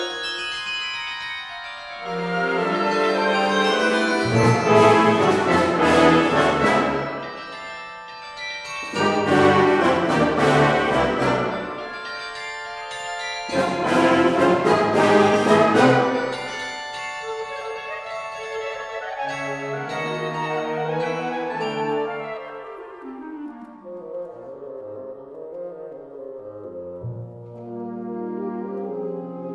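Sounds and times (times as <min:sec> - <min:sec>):
bell: 0:00.0 - 0:23.0.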